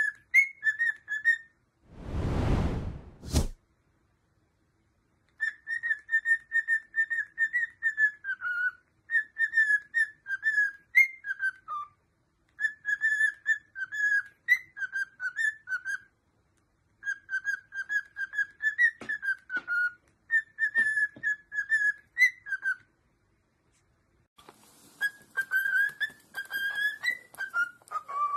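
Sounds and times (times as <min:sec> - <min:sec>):
cockatiel whistling: 0:00.0 - 0:01.5, 0:05.4 - 0:11.9, 0:12.6 - 0:16.1, 0:17.0 - 0:22.8, 0:24.9 - 0:28.3
loud rushing whoosh: 0:01.9 - 0:03.6.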